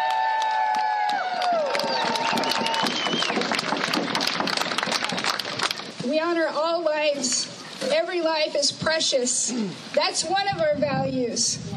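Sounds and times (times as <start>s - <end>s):
crowd applauding: 0.0s - 5.9s
speech: 6.2s - 11.7s.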